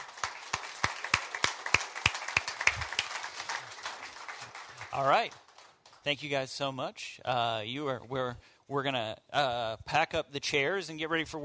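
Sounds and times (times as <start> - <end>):
small audience applause: 0.0 - 6.4
speech: 5.0 - 5.4, 6.0 - 11.4.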